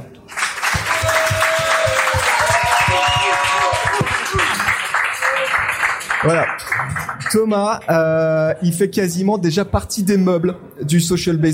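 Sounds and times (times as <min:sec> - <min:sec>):
audience applause: 0:00.3 - 0:07.5
faint voices and cheers: 0:00.7 - 0:05.6
speech: 0:06.2 - 0:11.5.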